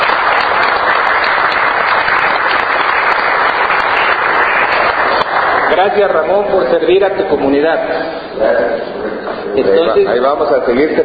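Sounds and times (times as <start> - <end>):
audience applause: 0.0 - 6.4
speech: 5.8 - 11.0.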